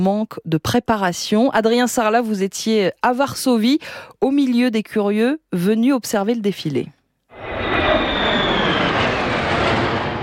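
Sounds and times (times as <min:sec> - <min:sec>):
speech: 0:00.0 - 0:07.5
F-16 and F-35 fighter jets flying overhead: 0:07.3 - 0:10.2.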